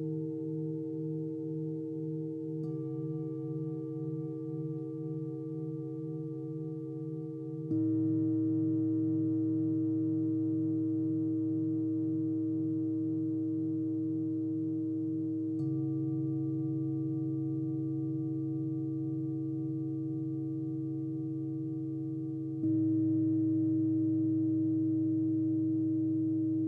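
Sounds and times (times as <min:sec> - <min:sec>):
background singing bowls: 0:00.0 - 0:26.6.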